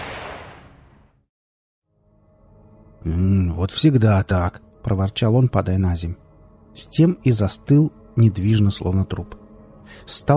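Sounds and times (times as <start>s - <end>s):
bullet whizzing past: 0.0s - 0.8s
gunshot: 0.0s - 0.9s
speech: 3.0s - 6.2s, 6.8s - 10.3s.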